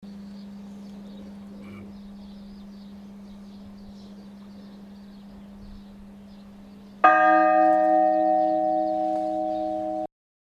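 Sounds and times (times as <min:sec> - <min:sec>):
bell ringing: 0:07.0 - 0:10.1.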